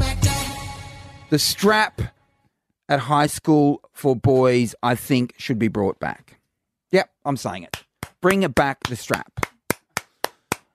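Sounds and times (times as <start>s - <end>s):
speech: 1.3s - 2.2s, 2.9s - 9.5s
person clapping hands: 7.7s - 10.7s.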